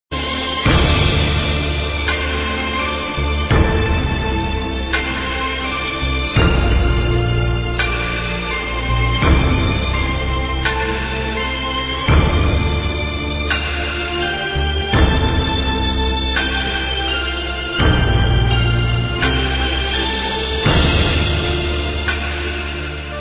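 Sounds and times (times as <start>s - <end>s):
palace drama background music: 0.1s - 23.2s.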